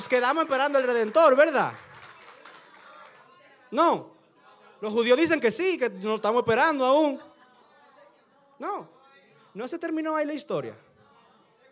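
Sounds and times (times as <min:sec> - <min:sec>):
audience applause: 0:00.0 - 0:03.4
speech: 0:00.1 - 0:01.9, 0:03.7 - 0:04.2, 0:04.8 - 0:07.3, 0:08.6 - 0:09.0, 0:09.6 - 0:10.8.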